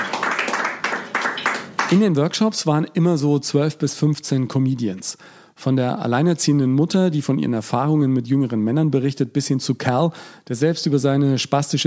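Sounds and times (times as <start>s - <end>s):
small group applauding: 0.0s - 2.2s
speech: 1.9s - 11.8s.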